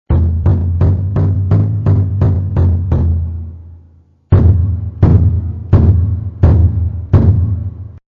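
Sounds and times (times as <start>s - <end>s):
taiko drums: 0.1s - 3.6s, 4.3s - 8.0s.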